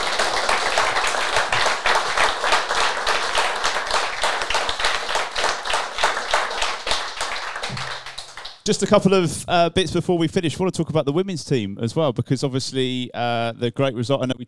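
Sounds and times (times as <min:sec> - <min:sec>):
audience round of applause: 0:00.0 - 0:08.6
speech: 0:08.7 - 0:14.4.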